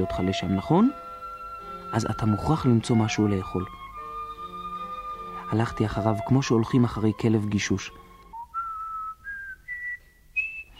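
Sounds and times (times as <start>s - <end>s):
speech: 0.0s - 1.0s, 1.9s - 3.8s, 5.5s - 8.0s
soft human whistle signal: 8.3s - 10.7s.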